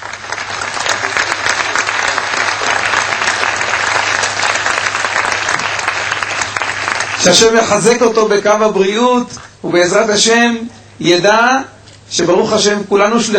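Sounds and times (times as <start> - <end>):
audience applause: 0.0 - 8.0
speech: 7.2 - 13.3.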